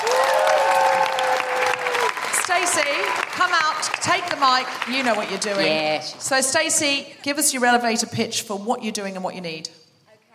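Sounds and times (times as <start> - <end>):
audience applause: 0.0 - 6.2
speech: 2.6 - 9.8.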